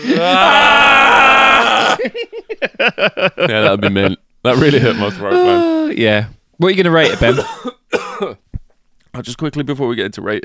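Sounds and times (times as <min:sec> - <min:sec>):
person imitating Godzilla's scream: 0:00.0 - 0:02.0, 0:04.8 - 0:06.0
speech: 0:00.1 - 0:00.6, 0:02.0 - 0:08.4, 0:09.2 - 0:10.4
laughter: 0:01.9 - 0:05.9
short choppy vocal bursts: 0:04.9 - 0:06.0.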